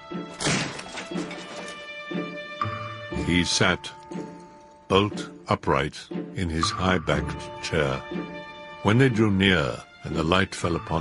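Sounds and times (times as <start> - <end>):
wooden door being burst open: 0.4 - 1.4
speech: 3.3 - 4.0, 4.9 - 10.9.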